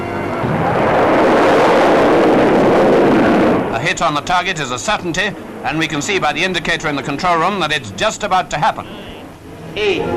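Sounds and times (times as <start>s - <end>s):
new guided missile launching: 0.2s - 4.2s
speech: 4.0s - 9.1s, 9.8s - 10.1s.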